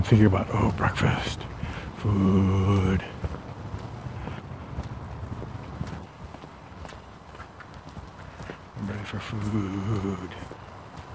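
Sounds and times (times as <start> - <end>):
speech: 0.0 - 3.4, 9.1 - 10.6
person walking with slightly crunchy footsteps: 0.0 - 11.1.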